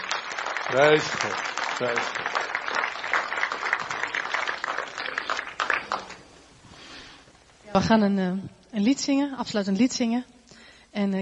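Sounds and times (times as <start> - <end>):
applause: 0.0 - 6.2
speech: 0.7 - 2.5, 7.7 - 10.3, 11.0 - 11.1.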